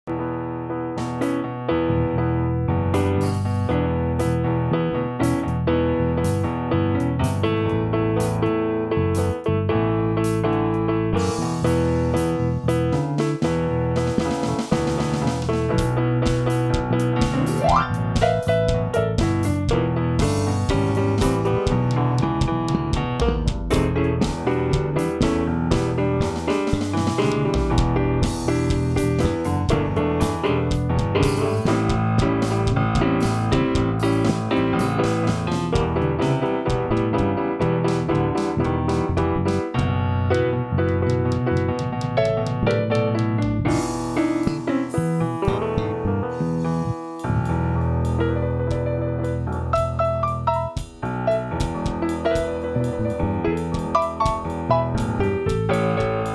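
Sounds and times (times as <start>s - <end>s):
blues music: 0.1s - 56.3s.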